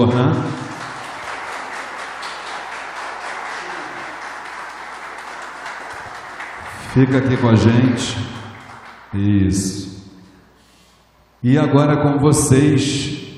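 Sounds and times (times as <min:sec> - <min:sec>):
speech: 0:00.0 - 0:00.6, 0:06.9 - 0:08.4, 0:09.1 - 0:10.0, 0:11.4 - 0:13.2
audience applause: 0:00.0 - 0:09.1.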